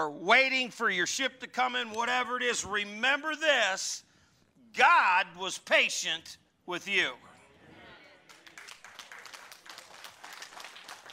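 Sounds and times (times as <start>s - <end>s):
speech: 0.0s - 4.1s, 4.7s - 7.3s
small crowd's quiet golf-clap applause: 8.3s - 11.1s.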